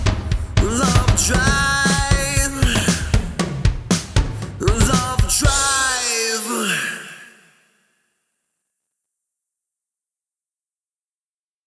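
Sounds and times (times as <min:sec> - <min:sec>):
lead vocals: 0:00.0 - 0:07.8.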